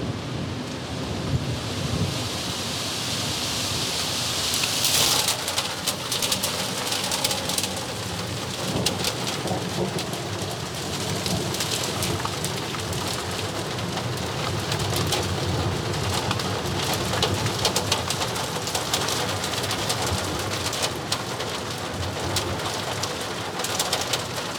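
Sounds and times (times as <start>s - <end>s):
hail storm: 0.1s - 24.5s.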